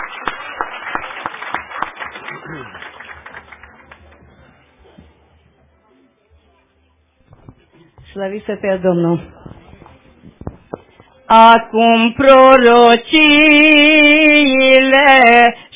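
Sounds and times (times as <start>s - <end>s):
audience applause: 0.0s - 4.8s
speech: 8.2s - 9.4s, 11.3s - 15.7s.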